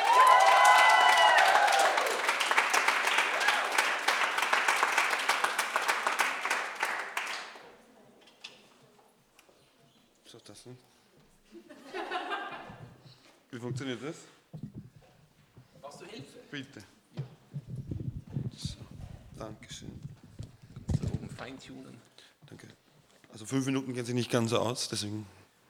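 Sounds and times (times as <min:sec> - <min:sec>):
audience applause for a performer: 0:00.0 - 0:07.6
laughter: 0:11.5 - 0:13.0
speech: 0:13.8 - 0:14.4, 0:16.6 - 0:17.0, 0:21.5 - 0:22.1, 0:23.4 - 0:25.4.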